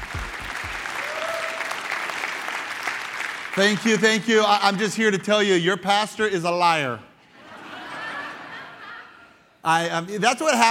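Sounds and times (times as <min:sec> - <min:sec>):
church congregation applauding a guest pastor: 0:00.0 - 0:05.1
speech: 0:03.6 - 0:07.1, 0:09.6 - 0:10.6
laughter: 0:07.2 - 0:09.6.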